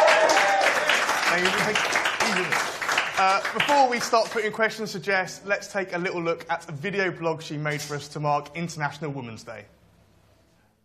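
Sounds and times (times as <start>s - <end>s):
audience applause: 0.0s - 4.6s
speech: 1.3s - 9.8s.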